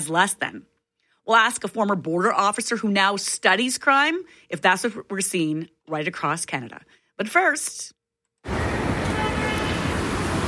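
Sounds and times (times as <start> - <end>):
speech: 0.0 - 0.7, 1.3 - 8.9
steady traffic on Portage Avenue: 8.4 - 10.4.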